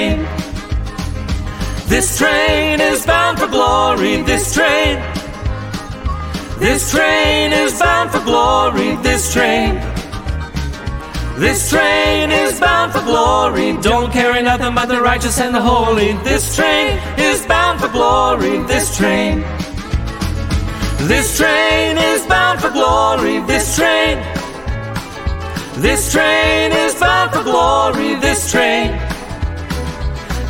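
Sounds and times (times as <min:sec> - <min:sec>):
song with all parts: 0:00.0 - 0:30.4.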